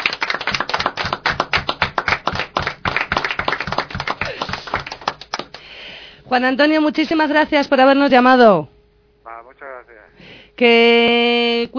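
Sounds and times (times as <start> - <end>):
applause: 0.0 - 5.7
speech: 6.3 - 8.7, 10.6 - 11.7.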